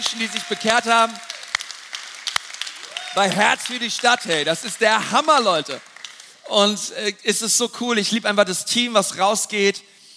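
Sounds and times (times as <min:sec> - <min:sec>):
speech: 0:00.0 - 0:01.3, 0:03.2 - 0:05.9, 0:06.5 - 0:09.9
audience applause: 0:00.0 - 0:06.4.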